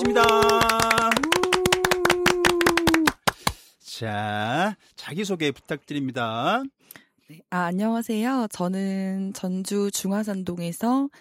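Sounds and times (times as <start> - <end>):
hands clapping: 0.0 - 3.6
speech: 4.0 - 11.1.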